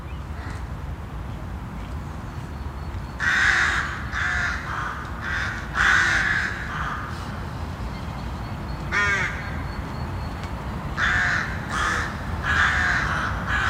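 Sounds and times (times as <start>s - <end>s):
background noise: 0.0s - 13.6s
rooks cawing: 0.4s - 0.7s, 3.2s - 7.4s, 8.9s - 9.6s, 11.0s - 13.6s.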